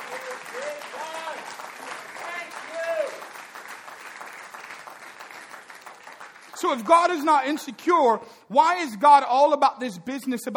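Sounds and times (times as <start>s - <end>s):
audience applause: 0.0s - 7.9s
speech: 6.6s - 10.5s.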